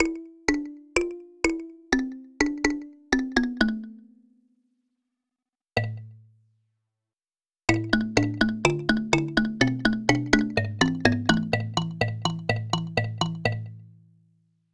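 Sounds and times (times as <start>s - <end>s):
kalimba: 0.0s - 4.3s, 7.7s - 13.8s.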